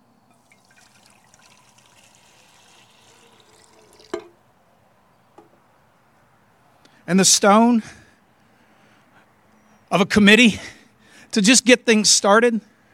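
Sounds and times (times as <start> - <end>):
water pouring into a kettle: 0.3 - 4.4
speech: 7.1 - 8.0, 10.0 - 10.8, 11.4 - 12.7.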